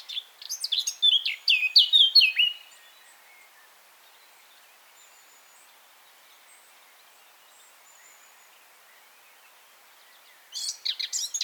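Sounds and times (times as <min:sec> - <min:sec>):
Eurasian blackcap Sylvia atricapilla singing: 0:00.0 - 0:02.6.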